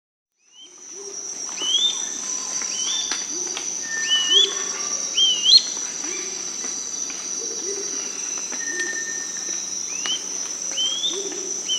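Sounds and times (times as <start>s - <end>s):
Gray-crowned flycatcher song in South America: 0.4s - 11.7s.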